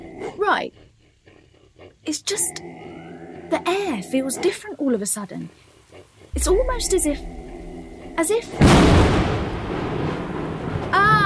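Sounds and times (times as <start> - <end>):
speech: 0.5 - 0.8, 2.0 - 7.4, 8.2 - 9.9
thunder: 6.4 - 11.2.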